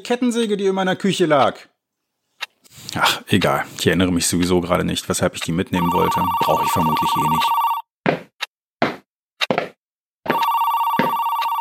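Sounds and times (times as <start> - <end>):
speech: 0.0 - 1.7, 2.7 - 7.7
telephone bell ringing: 5.8 - 7.9, 10.3 - 11.6.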